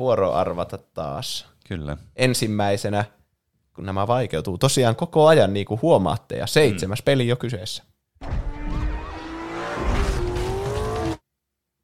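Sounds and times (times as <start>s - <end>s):
speech: 0.0s - 3.2s, 3.8s - 8.4s
sporty car engine roaring in a driving video game: 8.2s - 11.2s
tires squealing in a driving video game: 8.3s - 11.2s.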